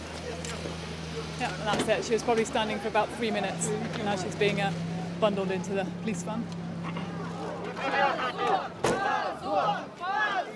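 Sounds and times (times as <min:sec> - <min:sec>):
speech: 0:01.4 - 0:07.1, 0:07.8 - 0:08.8
crowd shouting at police: 0:06.8 - 0:10.5.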